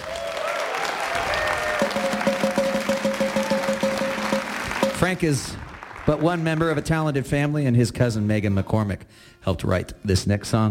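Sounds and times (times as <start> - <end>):
audience applause: 0.0 - 7.3
speech: 5.0 - 10.6.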